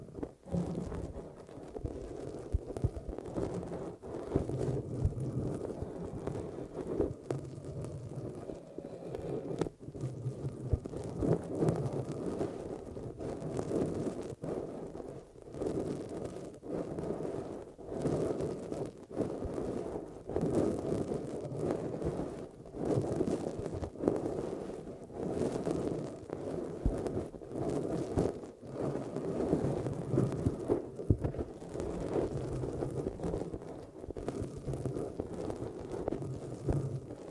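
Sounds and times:
eardrum massage muffled rubbing: 0.0 - 37.2
soft taps and crackles: 0.0 - 37.2.

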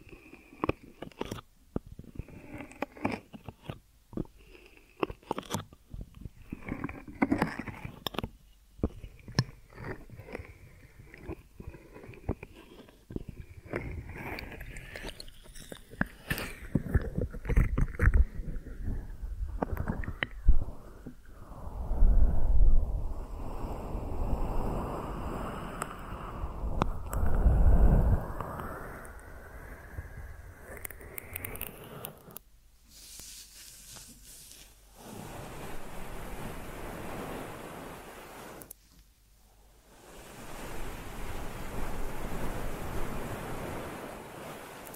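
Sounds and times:
ear massage rubbing and crackling strokes: 0.0 - 44.9.

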